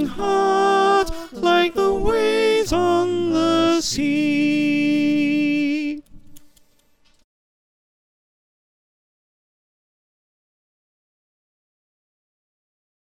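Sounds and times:
choir with soprano: 0.0 - 6.1.

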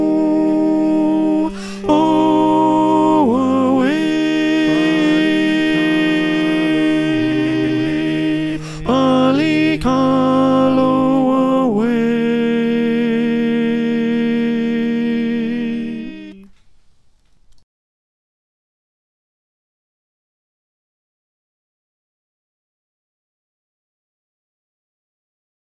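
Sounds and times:
alto choir singing: 0.0 - 16.5.

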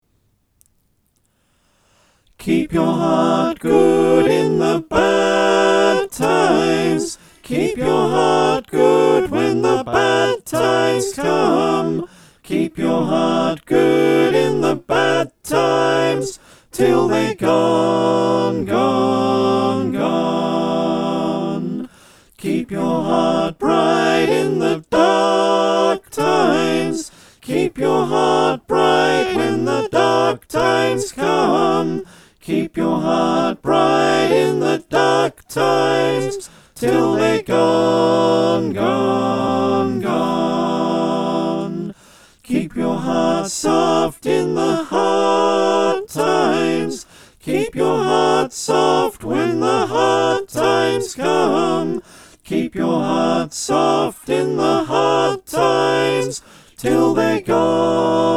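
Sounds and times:
soprano alto tenor bass choir singing: 2.4 - 58.3.

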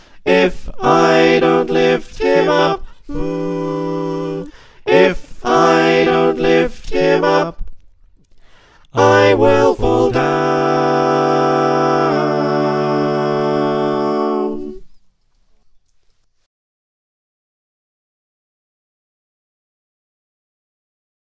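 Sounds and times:
soprano alto tenor bass choir singing: 0.0 - 7.6, 8.9 - 15.0.

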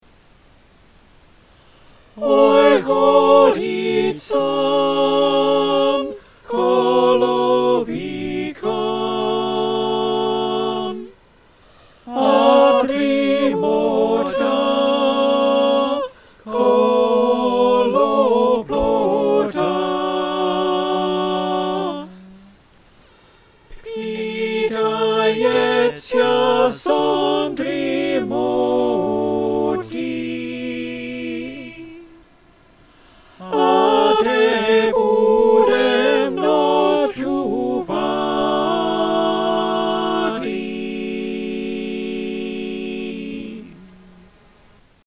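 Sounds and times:
soprano alto tenor bass choir singing: 2.1 - 22.7, 23.6 - 44.4.

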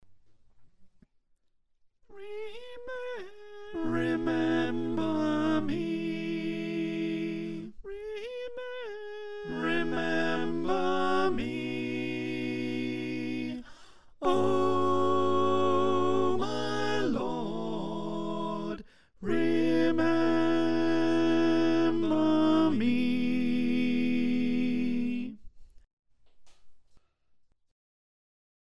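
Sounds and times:
alto choir singing: 3.2 - 7.8, 9.3 - 25.4.

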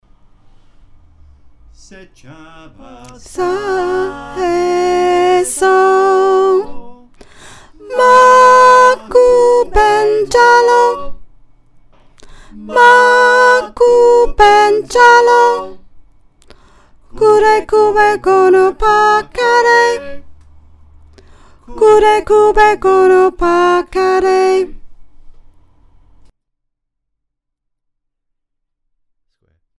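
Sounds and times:
choir with soprano: 1.8 - 7.1, 7.7 - 11.2, 12.5 - 15.8, 17.1 - 20.2, 21.7 - 24.7.

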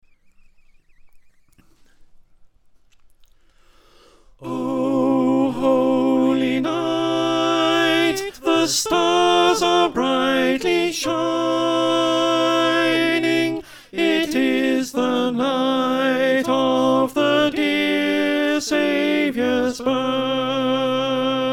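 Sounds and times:
alto choir singing: 4.4 - 21.5.

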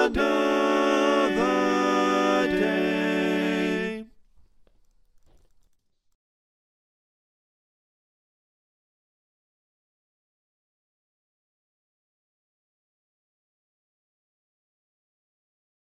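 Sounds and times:
SATB four-part choir singing: 0.0 - 4.1.

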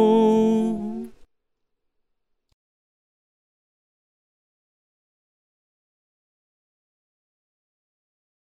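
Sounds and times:
choir singing: 0.0 - 1.2
tenor voice: 0.0 - 1.2.

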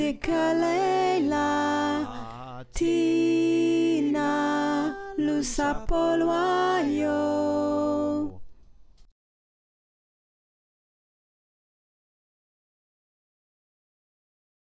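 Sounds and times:
alto choir singing: 0.0 - 8.4.

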